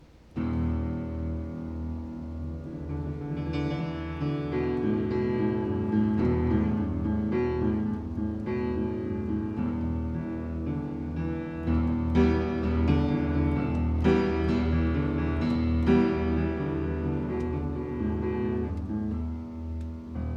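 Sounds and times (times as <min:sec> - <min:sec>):
piano prelude: 0:00.0 - 0:20.3.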